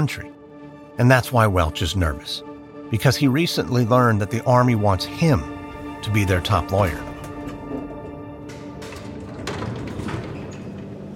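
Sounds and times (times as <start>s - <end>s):
speech: 0.0s - 0.4s, 1.0s - 7.1s
elevator doors sliding open: 5.2s - 11.1s.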